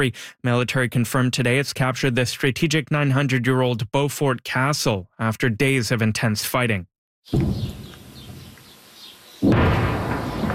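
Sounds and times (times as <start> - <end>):
speech: 0.0 - 7.8
distant explosions: 7.3 - 8.4, 9.4 - 10.5.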